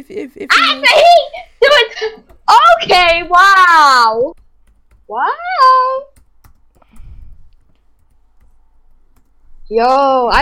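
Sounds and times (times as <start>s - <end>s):
speech: 0.0s - 1.4s, 2.0s - 4.4s, 5.1s - 6.1s, 9.7s - 10.4s
typing on a computer keyboard: 4.3s - 5.1s, 6.0s - 9.4s.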